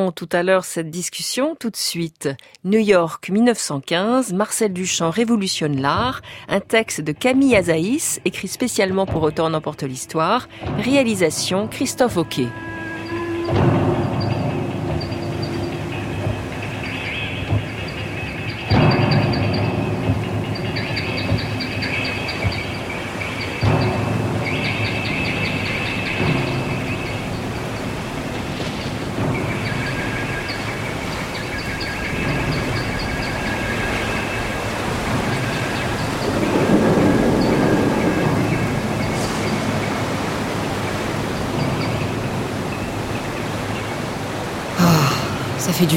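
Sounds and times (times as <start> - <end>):
speech: 0.0 - 12.8
storm: 12.6 - 45.8.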